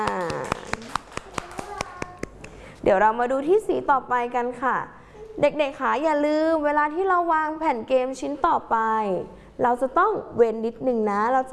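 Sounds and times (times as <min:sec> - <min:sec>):
children clapping rhythmically in a classroom: 0:00.0 - 0:02.6
speech: 0:02.9 - 0:11.5.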